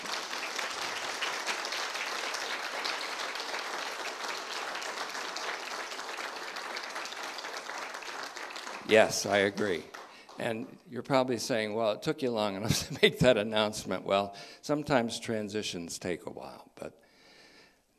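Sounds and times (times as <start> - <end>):
audience applause: 0.0 - 10.6
speech: 8.9 - 17.0.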